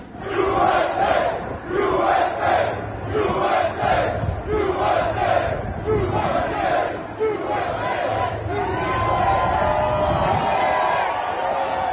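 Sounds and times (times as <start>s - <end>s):
crowd chanting USA: 0.2s - 9.1s
large crowd roaring and shouting: 0.2s - 11.9s.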